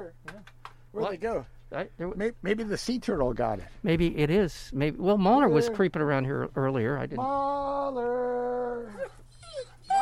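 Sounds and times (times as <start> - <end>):
speech: 1.0 - 9.2
dog whimpering: 7.2 - 9.9
dog yelping: 8.7 - 9.9.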